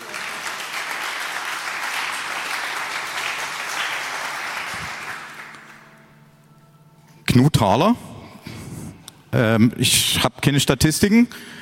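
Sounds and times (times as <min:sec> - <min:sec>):
applause: 0:00.0 - 0:05.9
speech: 0:07.4 - 0:08.1, 0:09.4 - 0:11.6.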